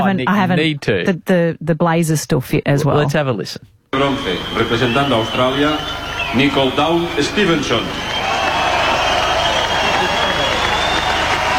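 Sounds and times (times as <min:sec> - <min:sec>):
speech: 0:00.0 - 0:08.1
large outdoor crowd cheering at a medal ceremony: 0:04.0 - 0:11.5.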